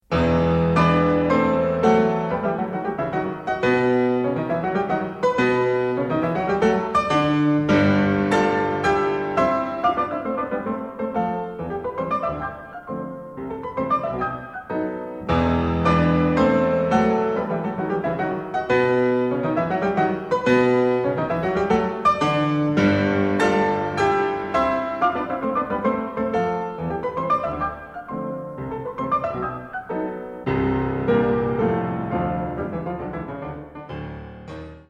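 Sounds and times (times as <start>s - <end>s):
piano sonata third movement: 0.0s - 34.8s.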